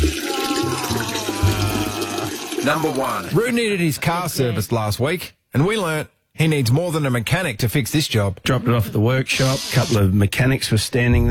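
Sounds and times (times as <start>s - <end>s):
pee in the toilet sound effect: 0.0s - 3.6s
speech: 2.6s - 11.2s.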